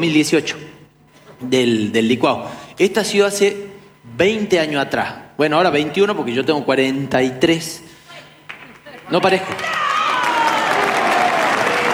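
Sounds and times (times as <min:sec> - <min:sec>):
speech: 0:00.0 - 0:00.8, 0:01.4 - 0:07.9, 0:09.1 - 0:09.8
audience applause: 0:08.5 - 0:11.9.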